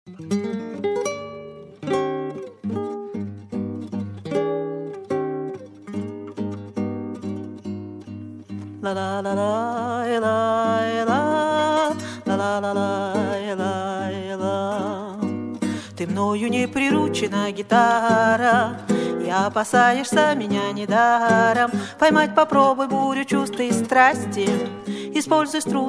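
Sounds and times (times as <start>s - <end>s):
guitar: 0.1s - 25.8s.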